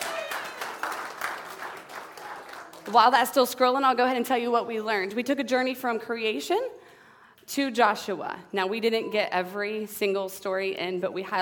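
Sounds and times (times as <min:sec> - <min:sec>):
audience round of applause: 0:00.0 - 0:03.0
speech: 0:02.9 - 0:06.8, 0:07.5 - 0:11.4.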